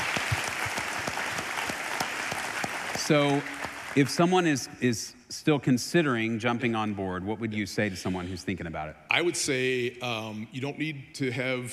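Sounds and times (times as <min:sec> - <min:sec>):
audience applause: 0:00.0 - 0:04.3
speech: 0:03.0 - 0:11.7.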